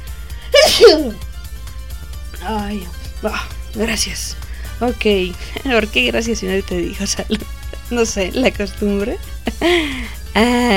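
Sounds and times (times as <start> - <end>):
person sneezing: 0.5 - 1.2
speech: 0.9 - 1.3, 2.4 - 10.7.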